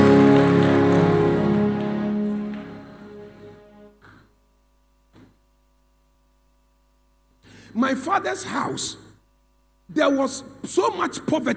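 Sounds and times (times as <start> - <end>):
audience clapping hands: 0.0 - 4.2
speech: 7.7 - 9.0, 9.9 - 11.5.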